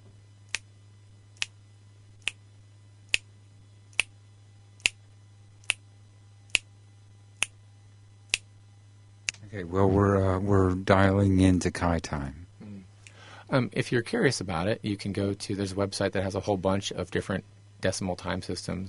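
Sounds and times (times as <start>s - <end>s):
faint low hum: 0.0s - 18.8s
finger snaps demonstrating a tempo: 0.5s - 0.7s, 1.4s - 1.6s, 2.2s - 2.4s, 3.1s - 3.3s, 3.9s - 4.1s, 4.8s - 5.0s, 5.6s - 5.8s, 6.5s - 6.7s, 7.4s - 7.6s, 8.3s - 8.5s, 9.2s - 9.4s
speech: 9.5s - 12.4s, 13.5s - 18.8s.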